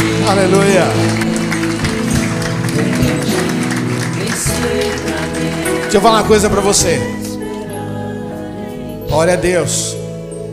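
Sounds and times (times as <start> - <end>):
audience applauding: 0.0 - 7.3
speech: 0.3 - 1.4, 5.9 - 7.3, 9.1 - 10.0.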